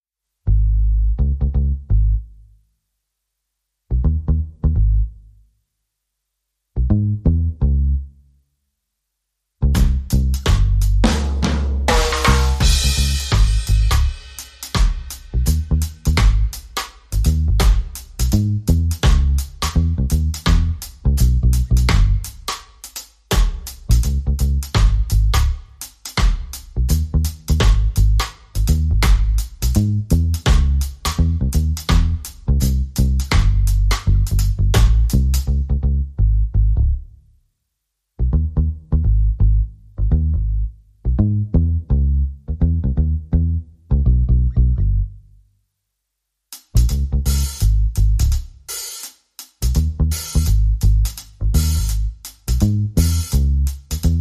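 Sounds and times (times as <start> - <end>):
bass: 0.3 - 45.8, 46.6 - 48.9, 49.6 - 54.2
drums: 9.6 - 35.8, 46.5 - 54.2.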